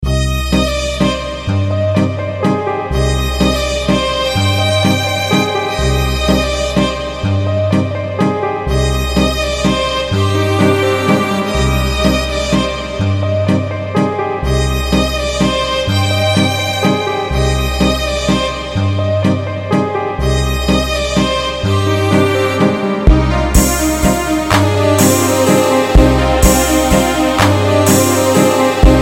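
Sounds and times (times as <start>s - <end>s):
love theme music: 0.0s - 29.0s.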